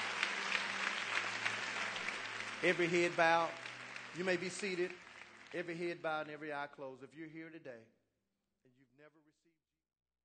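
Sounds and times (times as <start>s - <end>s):
audience hand clap: 0.0s - 6.6s
speech: 2.6s - 8.0s, 8.6s - 9.5s.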